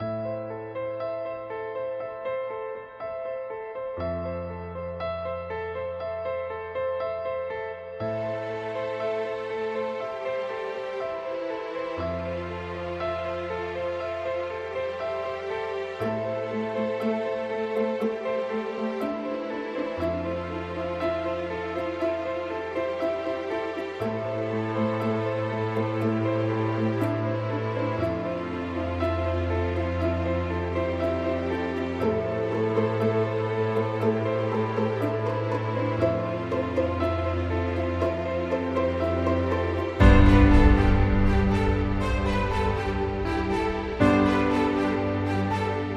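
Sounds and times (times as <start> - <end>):
orchestra: 0.0 - 45.9.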